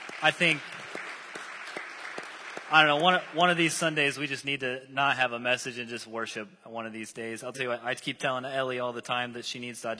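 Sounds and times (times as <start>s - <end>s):
audience applause: 0.0s - 4.1s
speech: 0.2s - 0.7s, 2.7s - 9.9s.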